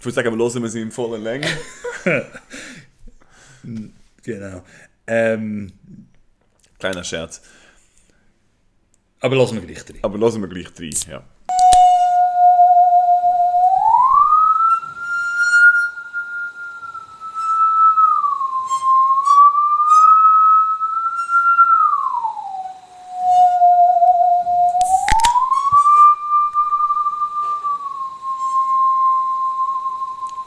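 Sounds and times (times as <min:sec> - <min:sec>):
speech: 0:00.0 - 0:02.8, 0:03.6 - 0:06.1, 0:06.8 - 0:07.6, 0:09.2 - 0:11.3
laughter: 0:01.4 - 0:02.6
singing saw playing a slow melody: 0:11.5 - 0:30.4.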